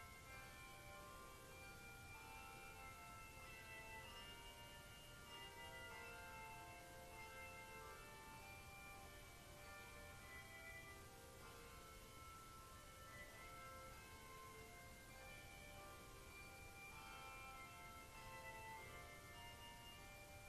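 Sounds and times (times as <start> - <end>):
bells ringing for an introit: 0.0 - 20.4.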